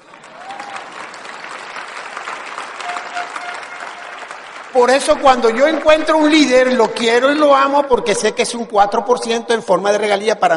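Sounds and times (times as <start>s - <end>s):
audience applause: 0.0s - 7.2s
speech: 4.8s - 10.5s.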